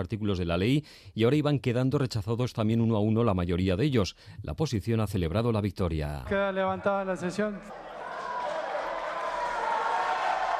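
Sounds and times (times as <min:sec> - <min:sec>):
speech: 0:00.0 - 0:07.9
applause of the opposition in the Congress: 0:08.0 - 0:10.5.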